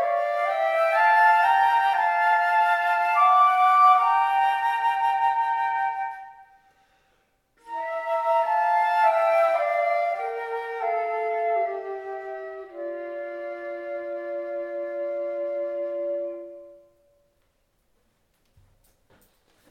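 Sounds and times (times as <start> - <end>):
flute: 0.0 - 6.8, 7.6 - 17.3.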